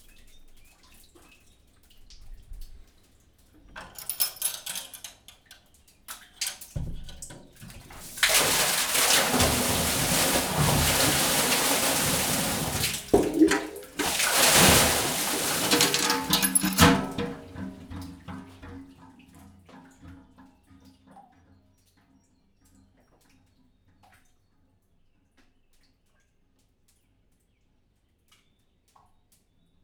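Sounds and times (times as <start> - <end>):
water slowly drawn from a closed-top wheel well: 6.4 - 20.9
water poured back into a closed-top wheel well: 7.6 - 19.0.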